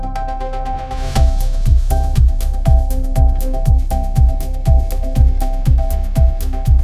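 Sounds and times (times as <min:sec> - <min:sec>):
upbeat pop melody with catchy hook: 0:00.1 - 0:06.8.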